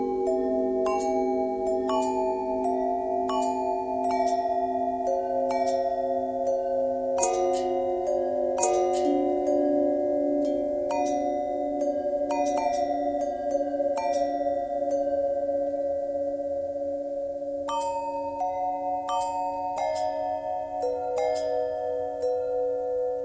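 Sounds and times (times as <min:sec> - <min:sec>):
long bell with bend and twist: 0:00.0 - 0:23.2.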